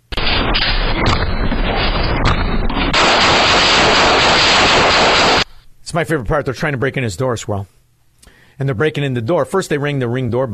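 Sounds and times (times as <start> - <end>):
repeated gunshots fired inside an apartment: 0.0 - 5.5
speech: 5.9 - 7.8, 8.6 - 10.5.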